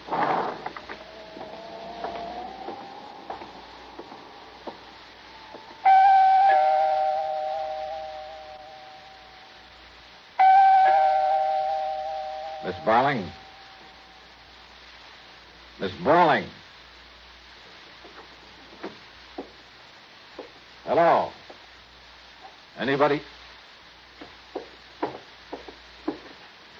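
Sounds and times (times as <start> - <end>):
apartment doorbell ringing: 4.7 - 9.4, 10.4 - 14.2
speech: 12.9 - 13.4, 15.8 - 16.6, 23.0 - 23.3.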